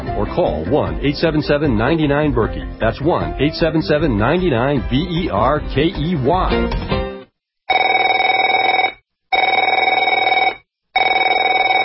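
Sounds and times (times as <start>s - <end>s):
speech: 0.2s - 7.0s
telephone ringing: 7.7s - 11.8s.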